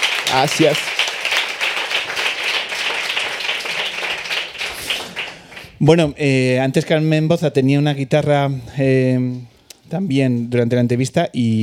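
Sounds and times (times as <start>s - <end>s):
audience applause: 0.0s - 5.8s
speech: 0.3s - 1.0s, 5.8s - 11.6s.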